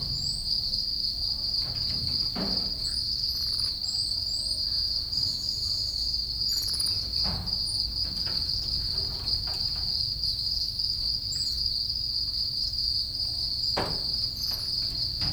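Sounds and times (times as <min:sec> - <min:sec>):
house crickets chirping loudly: 0:00.0 - 0:15.3.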